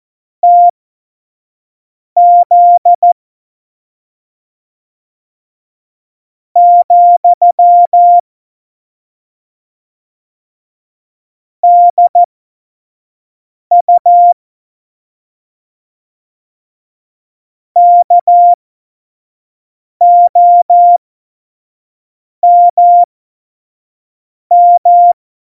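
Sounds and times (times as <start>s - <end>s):
CW Morse code beeps: 0.4s - 0.7s, 2.2s - 3.2s, 6.6s - 8.2s, 11.6s - 12.3s, 13.7s - 14.4s, 17.8s - 18.6s, 20.0s - 21.0s, 22.4s - 23.1s, 24.5s - 25.2s.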